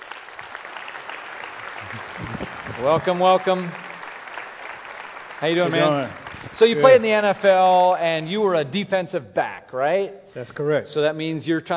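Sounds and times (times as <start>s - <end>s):
audience applause welcoming a former NFL defensive back: 0.0s - 8.4s
speech: 2.8s - 3.8s, 5.4s - 11.7s.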